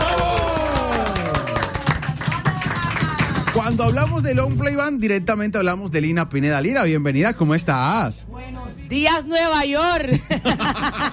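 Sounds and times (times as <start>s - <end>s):
small group hand clapping: 0.0s - 4.0s
speech: 3.6s - 11.1s
laughter: 10.1s - 11.1s.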